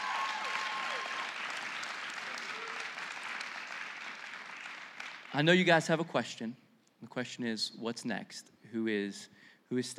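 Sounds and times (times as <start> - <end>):
audience applause: 0.0 - 5.3
speech: 5.3 - 9.9.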